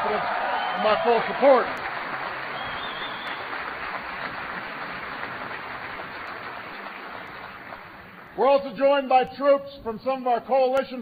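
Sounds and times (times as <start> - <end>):
crowd applauding: 0.0 - 8.4
speech: 0.1 - 1.8, 8.4 - 10.9.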